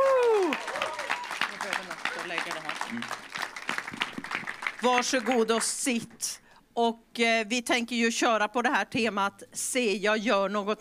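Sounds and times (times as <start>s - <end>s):
audience applause: 0.0s - 5.7s
speech: 4.8s - 10.7s.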